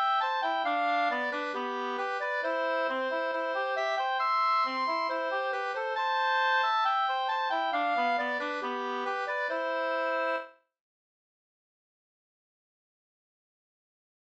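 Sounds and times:
folk walking tune: 0.0 - 10.5.

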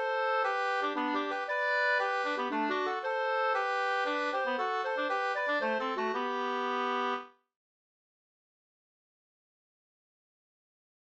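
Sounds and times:
two-part polska dance tune: 0.0 - 7.2.

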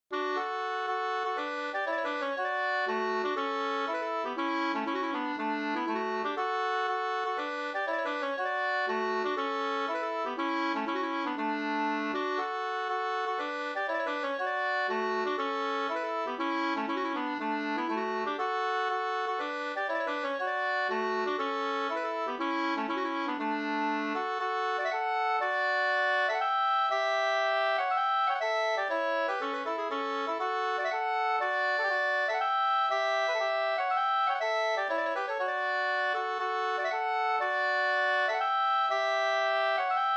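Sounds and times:
polska folk dance tune: 0.1 - 40.1.

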